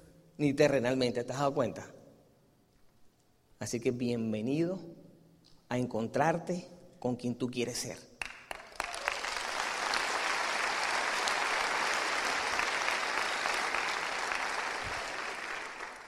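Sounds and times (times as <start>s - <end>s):
speech: 0.4s - 2.0s, 3.6s - 5.0s, 5.7s - 8.1s
audience applause: 8.2s - 16.0s.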